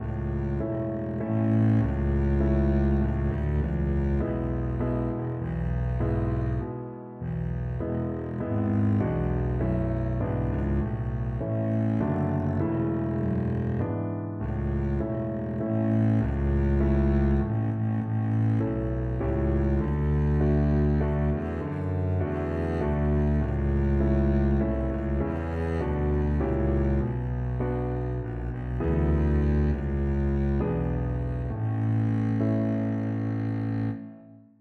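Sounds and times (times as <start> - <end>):
double bass: 0.0 - 34.3.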